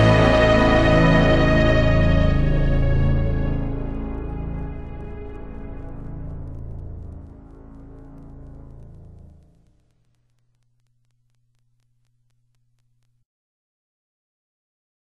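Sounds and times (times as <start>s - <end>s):
piano: 0.0s - 7.8s.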